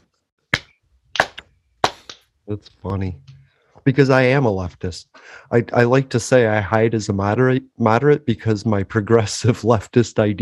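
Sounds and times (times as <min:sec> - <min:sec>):
slow clap: 0:00.6 - 0:02.3
speech: 0:02.5 - 0:10.4.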